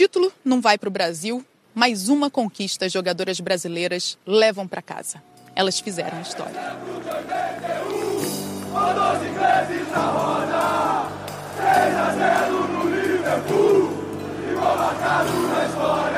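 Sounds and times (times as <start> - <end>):
speech: 0.0 - 8.0
ecstatic crowd cheering in Rio de Janeiro: 5.7 - 16.1.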